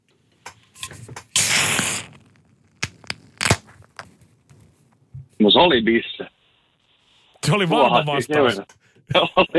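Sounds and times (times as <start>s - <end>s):
beer can cracked open with hiss of fizz: 1.2s - 2.3s
speech: 5.4s - 6.4s, 7.4s - 9.5s.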